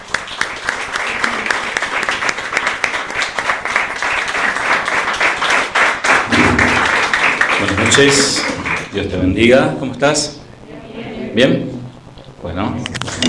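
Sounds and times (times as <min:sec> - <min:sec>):
audience applause: 0:00.0 - 0:09.2
speech: 0:07.9 - 0:10.4, 0:11.4 - 0:11.7.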